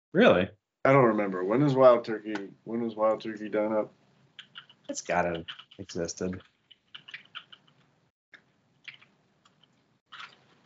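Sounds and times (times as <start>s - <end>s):
speech: 0.1s - 4.0s, 4.9s - 6.5s
computer keyboard typing: 4.3s - 7.9s, 8.8s - 10.6s.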